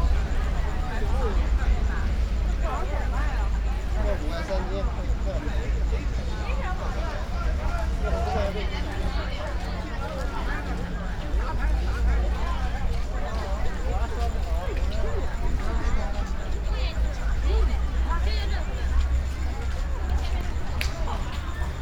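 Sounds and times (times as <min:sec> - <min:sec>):
street ambience in Beijing: 0:00.0 - 0:21.7.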